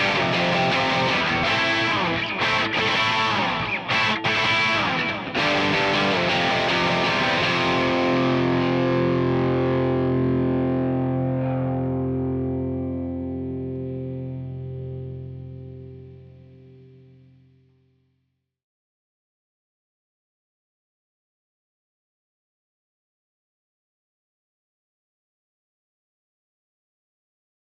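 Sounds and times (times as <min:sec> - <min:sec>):
guitar in C: 0:00.0 - 0:18.0.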